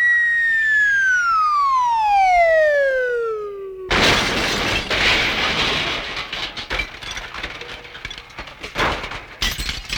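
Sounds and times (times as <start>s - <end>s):
loud whistling tone sliding downward: 0.0s - 4.0s
car falling off building and crashing: 3.9s - 9.9s
clattering scattering debris: 3.9s - 9.9s.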